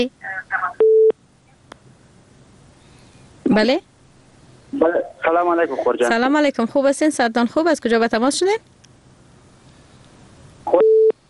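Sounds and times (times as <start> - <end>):
speech: 0.0 - 0.3, 3.5 - 3.9, 4.7 - 8.7
telephone busy tone after a dropped call: 0.8 - 1.2, 10.7 - 11.2.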